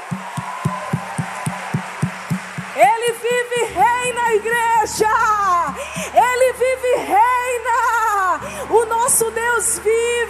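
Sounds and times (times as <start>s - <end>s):
audience applause: 0.0s - 4.4s
speech: 2.8s - 10.2s.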